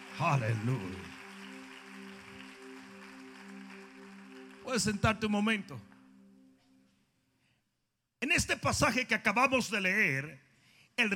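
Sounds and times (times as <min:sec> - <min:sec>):
audience applauding loudly: 0:00.0 - 0:06.1
speech: 0:00.2 - 0:01.2, 0:04.7 - 0:05.9, 0:08.2 - 0:10.4, 0:11.0 - 0:11.1.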